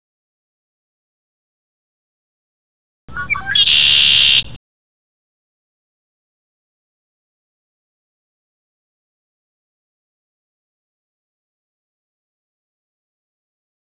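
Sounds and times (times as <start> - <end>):
conklaree birdsong: 3.1 - 4.4.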